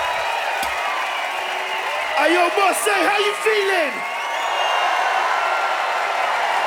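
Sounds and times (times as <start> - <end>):
audience in Marseille cheering wildly: 0.0 - 6.6
speech: 2.2 - 4.1.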